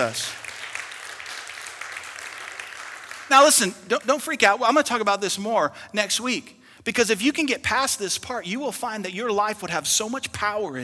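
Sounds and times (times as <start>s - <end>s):
speech: 0.0s - 0.4s, 3.3s - 10.8s
audience applause: 0.0s - 4.0s.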